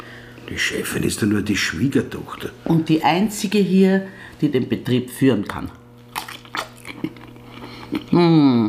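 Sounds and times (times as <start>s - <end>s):
speech: 0.5s - 5.8s, 8.2s - 8.6s
hot Frankfurter sausages being bitten and chewed: 6.0s - 8.2s.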